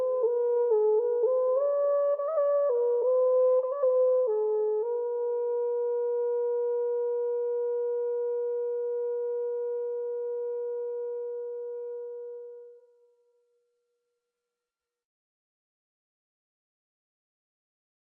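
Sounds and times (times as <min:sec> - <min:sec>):
Norwegian viking music: 0:00.0 - 0:12.8.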